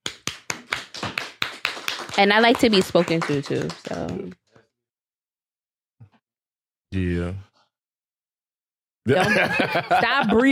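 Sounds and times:
hands clapping: 0.0 - 4.4
speech: 2.2 - 4.4, 6.9 - 7.5, 9.0 - 10.5
laughter: 9.1 - 10.5.

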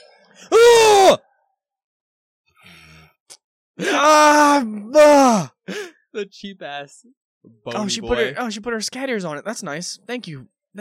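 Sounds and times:
frightened scream: 3.8 - 5.5
speech: 3.8 - 5.5, 6.2 - 10.8.

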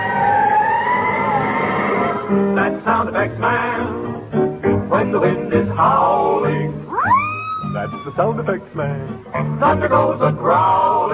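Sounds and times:
fire engine siren wailing: 0.0 - 2.3, 6.9 - 8.3
speech: 2.3 - 4.2, 5.0 - 6.5, 7.7 - 11.1.

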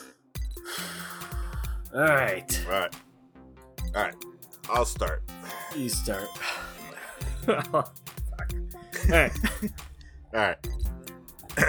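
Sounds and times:
deep breath drawn in with a gasp: 0.6 - 1.9, 10.0 - 10.3
speech: 1.9 - 3.0, 3.9 - 6.6, 7.4 - 8.0, 9.1 - 10.9.

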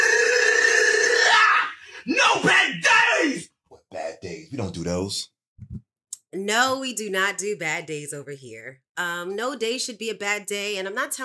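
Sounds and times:
person howling: 1.0 - 3.4
speech: 4.6 - 5.8, 6.4 - 11.2.

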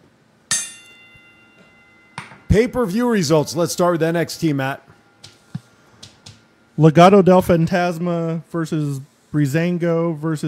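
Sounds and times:
bell ringing: 0.5 - 5.2
speech: 2.5 - 4.9, 6.8 - 10.4.

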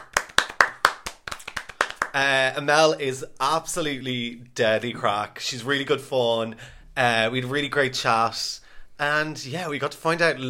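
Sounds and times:
clapping, round of applause: 0.0 - 2.2
speech: 2.1 - 10.4.

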